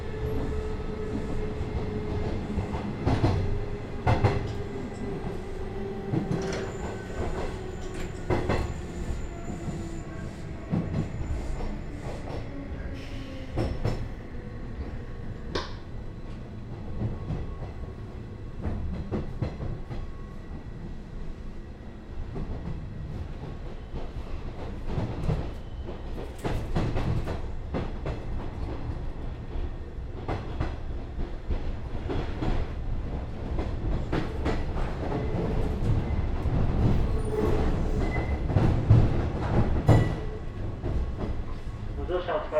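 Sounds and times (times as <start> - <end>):
train interior running toward terminal station: 0.0 - 42.5.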